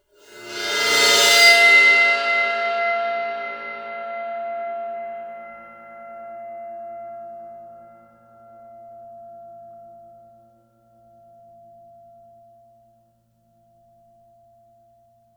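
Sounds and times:
bowed suspended cymbal crash: 0.2 - 9.8.

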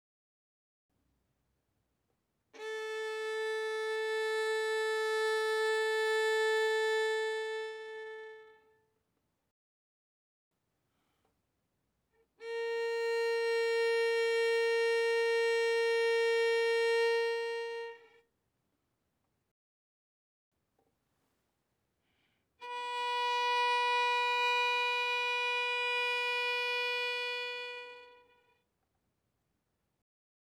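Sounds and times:
violin bowed on A string: 2.6 - 8.8, 12.4 - 18.2, 22.6 - 28.5.

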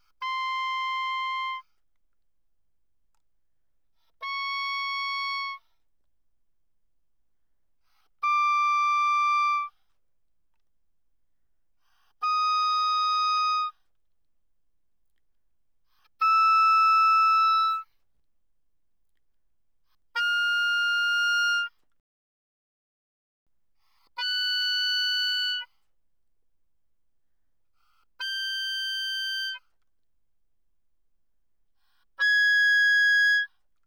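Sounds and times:
oboe playing loudly in the high register: 0.2 - 1.6, 4.2 - 5.6, 8.2 - 9.7, 12.2 - 13.7, 16.2 - 17.8, 20.2 - 21.7, 24.2 - 25.7, 28.2 - 29.6, 32.2 - 33.5.

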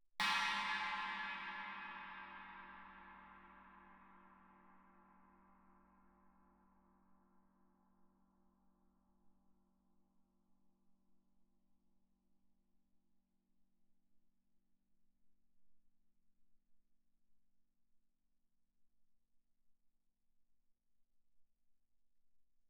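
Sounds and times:
Chinese suspended cymbal struck with stick shoulder: 0.2 - 6.2.

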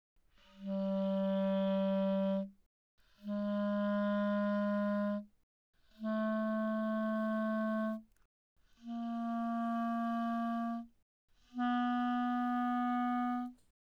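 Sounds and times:
E-flat clarinet notes mezzo-forte G3 to B3: 0.5 - 2.5, 3.2 - 5.2, 6.0 - 8.1, 8.8 - 10.9, 11.5 - 13.6.

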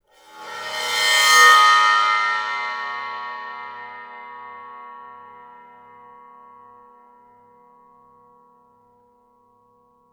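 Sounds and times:
bowed suspended cymbal crash: 0.2 - 6.3.

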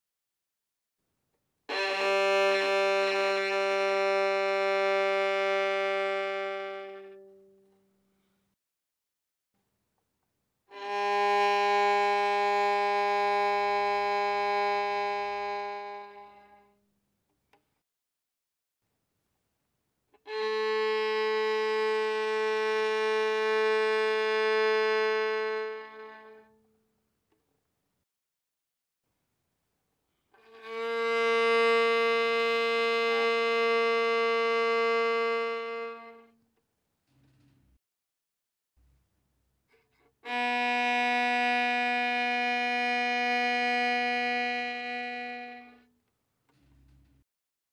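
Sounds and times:
violin bowed fortissimo on the G string: 1.7 - 7.6, 10.7 - 16.6, 20.3 - 26.5, 30.4 - 36.3, 40.2 - 45.9.

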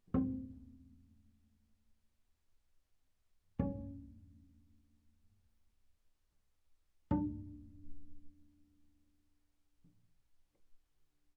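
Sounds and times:
double bass pizzicato on the D string fortissimo C4 D4: 0.0 - 1.3, 3.6 - 4.7, 7.1 - 8.4.

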